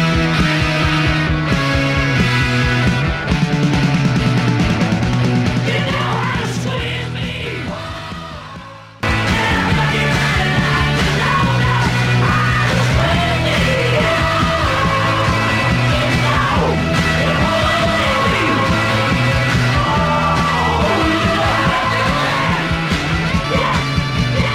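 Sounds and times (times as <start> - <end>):
glam rock record being played: 0.0 - 24.5
shouted chanting vocals: 5.7 - 24.5.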